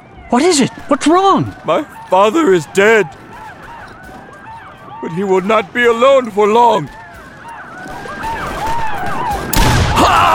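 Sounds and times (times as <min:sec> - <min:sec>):
dense noisy battle-like background with warbling high tones: 0:00.0 - 0:10.3
speech: 0:00.3 - 0:03.2, 0:05.0 - 0:07.0
gunshot sound effect of Lieutenant Colonel Custer being shot at Little Bighorn: 0:09.4 - 0:10.3.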